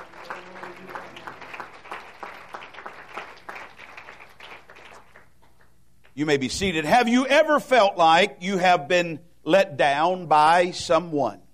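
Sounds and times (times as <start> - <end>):
audience applauding: 0.0 - 5.8
speech: 6.2 - 11.4.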